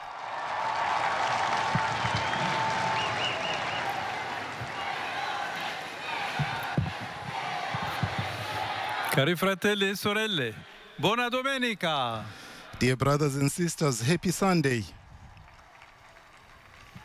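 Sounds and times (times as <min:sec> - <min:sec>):
large outdoor crowd in a square applauding: 0:00.0 - 0:09.2, 0:15.0 - 0:17.0
shouts from crowd: 0:00.4 - 0:09.2
murmuring voices: 0:01.6 - 0:09.2
speech: 0:09.2 - 0:15.0.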